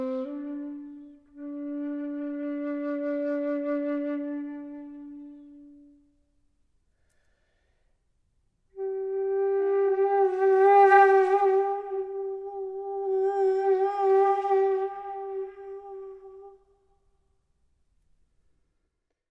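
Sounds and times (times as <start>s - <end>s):
flute: 0.0s - 6.2s, 8.7s - 16.8s.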